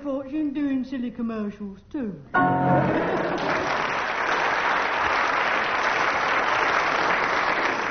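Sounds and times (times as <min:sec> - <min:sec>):
speech: 0:00.1 - 0:04.0
audience applause: 0:02.9 - 0:07.8.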